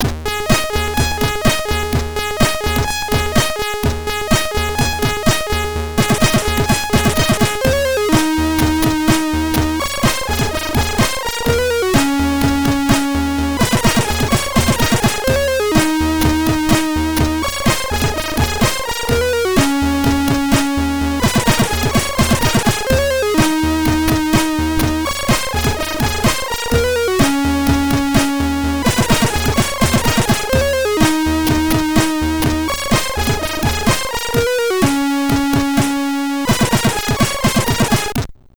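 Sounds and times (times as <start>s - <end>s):
SID stereo chiptune music: 0.0s - 38.2s.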